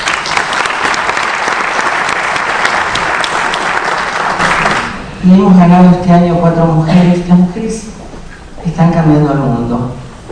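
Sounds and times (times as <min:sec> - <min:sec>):
audience applause: 0:00.0 - 0:05.0
speech: 0:05.2 - 0:08.0, 0:08.7 - 0:10.0.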